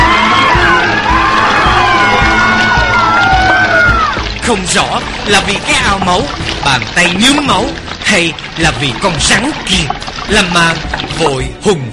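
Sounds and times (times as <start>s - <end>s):
group of people screaming loudly: 0.0s - 4.3s
speech: 4.5s - 11.9s.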